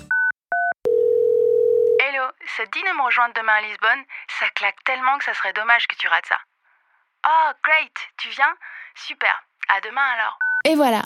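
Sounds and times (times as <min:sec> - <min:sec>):
dialing a phone number: 0:00.1 - 0:02.0
speech: 0:02.6 - 0:06.5, 0:07.2 - 0:11.0.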